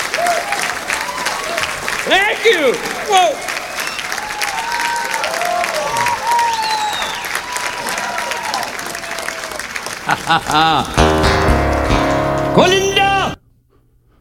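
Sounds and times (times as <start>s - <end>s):
audience applause at a live concert: 0.0s - 13.4s
speech: 2.1s - 3.5s, 10.1s - 11.3s, 12.6s - 13.0s
laughter: 9.7s - 11.6s
tonal sounds: 10.5s - 13.4s.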